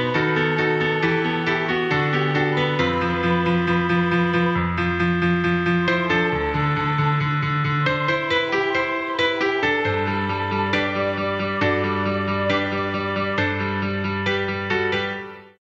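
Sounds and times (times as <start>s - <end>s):
short piano karaoke music: 0.0s - 15.6s.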